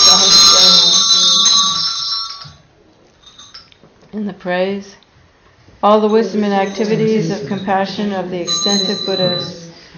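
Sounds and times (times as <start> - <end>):
bell rung during a Buddhist offering ritual: 0.0 - 3.7, 6.1 - 9.9
speech: 4.2 - 5.0, 5.8 - 9.6.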